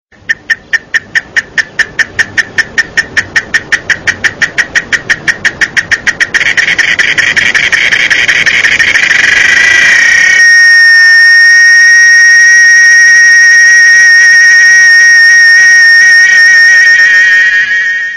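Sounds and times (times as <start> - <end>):
cicada buzzing: 0.3 - 18.1
steady high whistling tone: 2.3 - 18.1.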